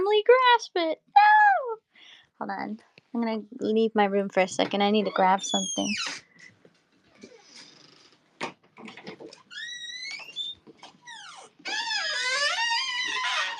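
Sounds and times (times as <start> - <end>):
speech: 0.2 - 1.3, 2.4 - 6.5
creaky door opening: 5.0 - 13.5.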